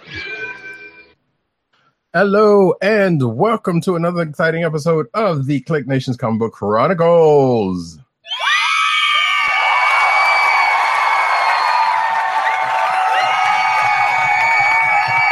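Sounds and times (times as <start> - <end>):
speech: 2.1 - 8.1
crowd cheering sound effect: 8.3 - 15.2.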